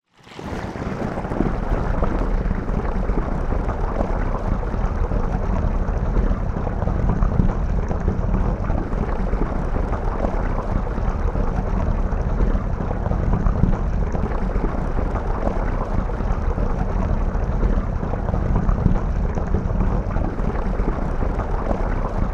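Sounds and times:
household bath water pouring into bath recorded underwater: 0.1s - 22.3s.

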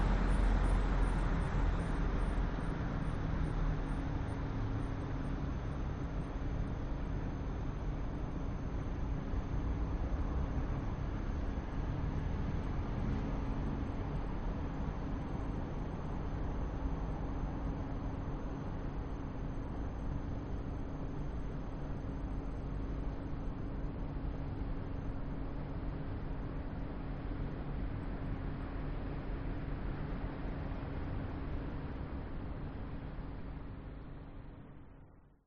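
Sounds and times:
cars passing by in a city at night: 0.0s - 1.8s
city ambience at night: 0.0s - 35.4s.

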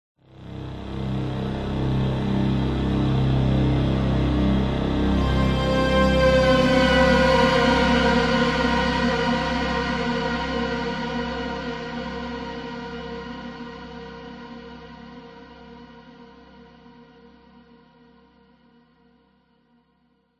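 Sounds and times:
dark horror synth evil buzzing descending: 0.9s - 10.7s.

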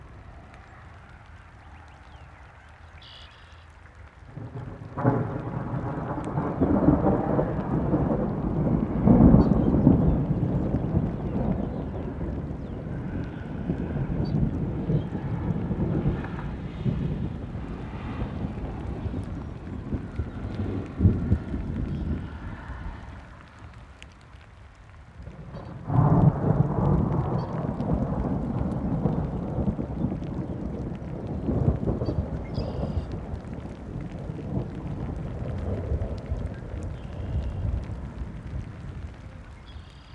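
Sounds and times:
rain during thunderstorm in Illinois USA: 0.0s - 40.1s
thunder in Illinois USA: 4.4s - 23.7s, 25.2s - 40.1s.

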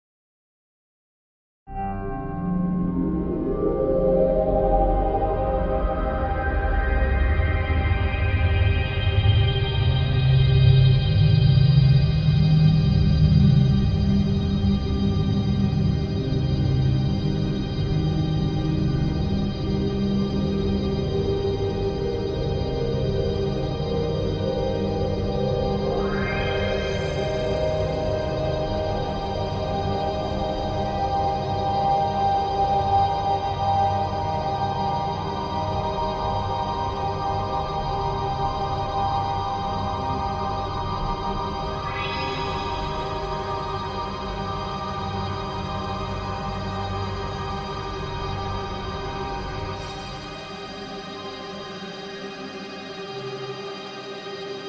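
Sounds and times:
musical guitar drone on C3: 1.8s - 54.6s.

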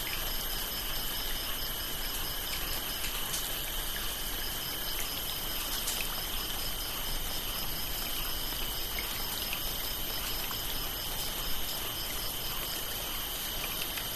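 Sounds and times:
crickets trilling in a rice field: 0.0s - 14.1s.

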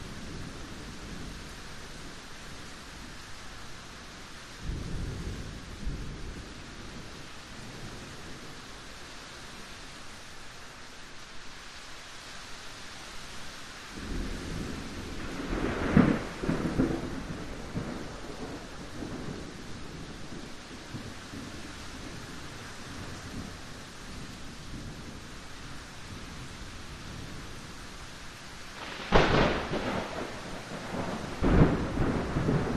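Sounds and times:
light rain in a yard: 0.0s - 32.7s
thunder cracks very close by: 14.2s - 19.6s, 28.8s - 32.7s.

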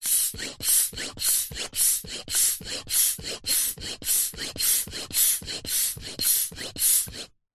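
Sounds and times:
plastic hand pump pumping fast: 0.0s - 7.4s.

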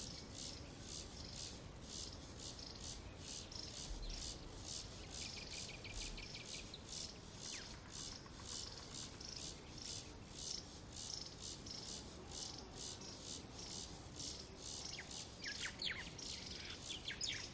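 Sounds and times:
insects chirping at a bush water hole at dusk: 0.0s - 17.5s.

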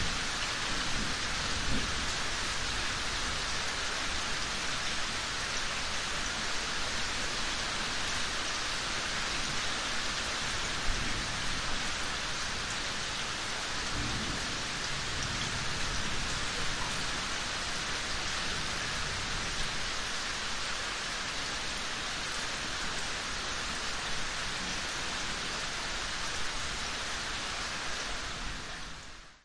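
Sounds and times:
approaching thunderstorm: 0.0s - 2.2s, 13.9s - 17.3s
rain drips in a yard: 0.0s - 29.4s.

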